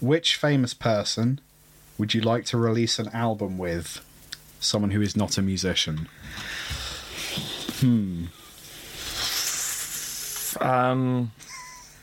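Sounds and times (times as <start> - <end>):
speech: 0.0 - 6.8, 7.8 - 8.4, 10.6 - 11.6
people taking sharp intakes of breath: 6.2 - 7.8, 8.4 - 10.6.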